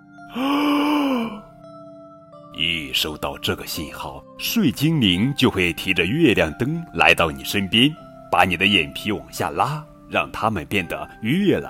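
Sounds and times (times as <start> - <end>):
person yawning: 0.3 - 1.6
speech: 0.4 - 0.6, 2.6 - 11.6.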